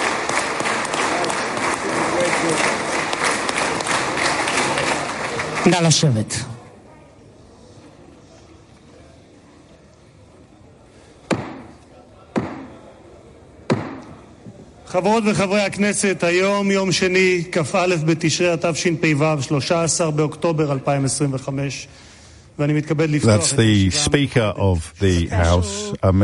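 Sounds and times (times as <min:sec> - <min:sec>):
applause welcoming Donald Trump in the Knesset: 0:00.0 - 0:06.5
speech: 0:05.6 - 0:06.5, 0:14.9 - 0:26.2
sharp knocks: 0:11.3 - 0:11.7, 0:12.3 - 0:12.8, 0:13.7 - 0:14.2.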